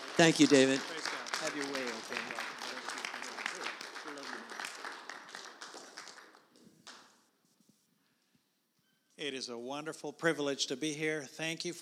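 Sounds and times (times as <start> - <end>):
audience applause: 0.0 - 7.2
speech: 0.2 - 0.9, 9.4 - 11.8.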